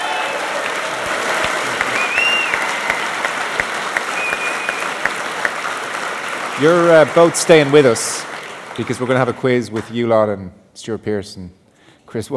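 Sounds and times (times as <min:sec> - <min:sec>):
audience applause: 0:00.0 - 0:09.7
speech: 0:06.6 - 0:12.3.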